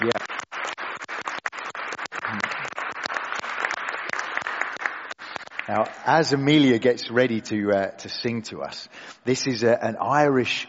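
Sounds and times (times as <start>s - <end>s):
speech: 0.0s - 0.3s, 5.7s - 10.6s
audience applause: 0.0s - 6.3s.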